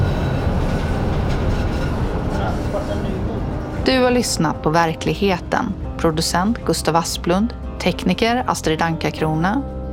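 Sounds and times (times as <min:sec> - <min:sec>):
rail cars rolling through a turning loop: 0:00.0 - 0:06.5
speech: 0:03.9 - 0:09.8.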